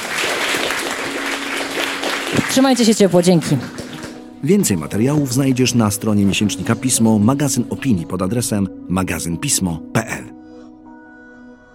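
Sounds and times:
loud applause: 0:00.0 - 0:04.2
speech: 0:02.5 - 0:03.8, 0:04.4 - 0:10.3.

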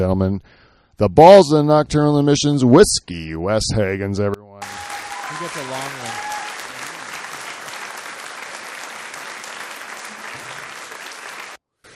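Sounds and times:
speech: 0:00.0 - 0:04.7, 0:05.4 - 0:06.3
audience applause: 0:04.6 - 0:11.9.

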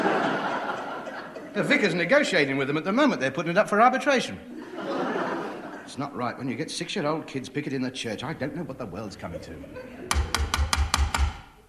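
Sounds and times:
laughter: 0:00.0 - 0:02.0, 0:04.4 - 0:06.0, 0:09.4 - 0:10.1
speech: 0:01.6 - 0:05.1, 0:05.9 - 0:10.0
knocking on a door: 0:10.1 - 0:11.6.

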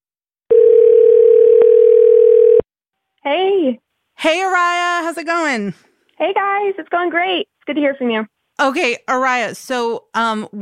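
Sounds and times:
telephone ringing on an outgoing call: 0:00.5 - 0:02.6
speech: 0:03.7 - 0:10.5.

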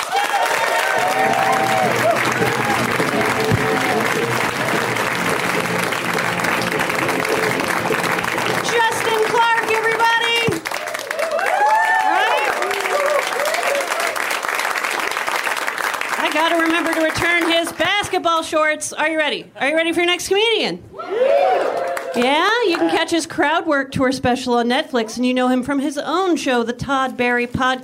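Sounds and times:
crowd cheering and whooping: 0:00.0 - 0:09.6, 0:10.6 - 0:14.4, 0:21.0 - 0:22.2
audience applauding a comedian: 0:00.0 - 0:18.1, 0:21.6 - 0:23.0
speech: 0:18.4 - 0:27.8.

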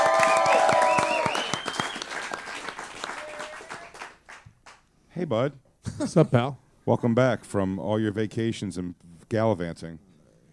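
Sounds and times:
whoops and high cheering shouts: 0:00.0 - 0:02.0, 0:03.0 - 0:03.9
audience applause: 0:00.0 - 0:04.4
speech: 0:05.2 - 0:10.1.

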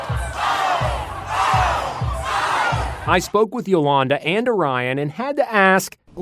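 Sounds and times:
students cheering and screaming wildly: 0:00.0 - 0:03.2
steady rhythmic thumping beat: 0:00.0 - 0:03.3
speech: 0:03.1 - 0:06.2.

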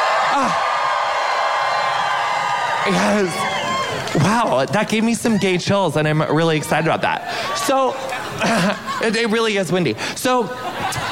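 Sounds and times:
high sweeping whoop: 0:00.0 - 0:04.2
crowd cheering: 0:00.0 - 0:09.3
speech: 0:00.4 - 0:00.7, 0:02.8 - 0:11.0
laughter: 0:07.4 - 0:11.0.

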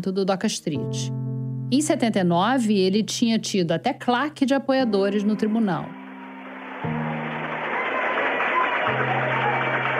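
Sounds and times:
speech: 0:00.0 - 0:06.0
audience applause: 0:06.0 - 0:09.9.

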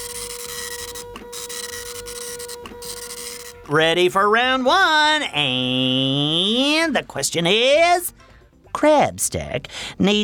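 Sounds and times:
printer printing a page: 0:00.0 - 0:03.7
speech: 0:03.7 - 0:08.2, 0:08.8 - 0:10.2.

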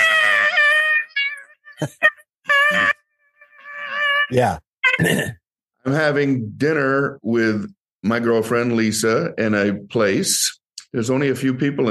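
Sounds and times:
voice imitating a chair being pushed along the ground: 0:00.0 - 0:05.1
speech: 0:01.8 - 0:02.1, 0:04.3 - 0:11.8.

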